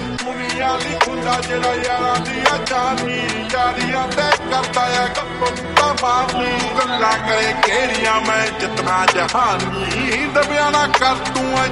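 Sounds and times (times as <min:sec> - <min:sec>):
drill beat: 0:00.2 - 0:11.7.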